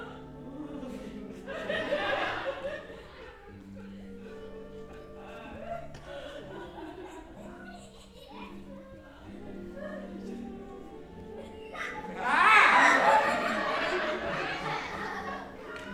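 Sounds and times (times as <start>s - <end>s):
children at a clown performance: 0.0s - 15.9s
crowd laughing at a clown performance: 0.0s - 15.9s
music at a clown performance: 0.0s - 15.9s
women at a clown performance: 0.0s - 15.9s
crowd applauding at a clown performance: 12.1s - 15.9s.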